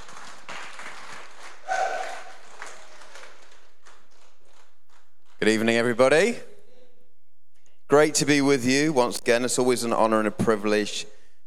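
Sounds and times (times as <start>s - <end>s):
audience applause: 0.0s - 5.0s
whistle or cheer: 1.7s - 2.3s
speech: 5.4s - 6.5s, 7.9s - 11.2s.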